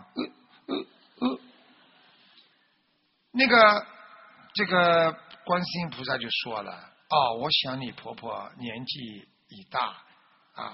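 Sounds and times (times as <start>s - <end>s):
hiccups while talking: 0.0s - 1.5s
low hiss: 0.0s - 10.7s
speech: 3.4s - 3.9s, 4.6s - 10.7s.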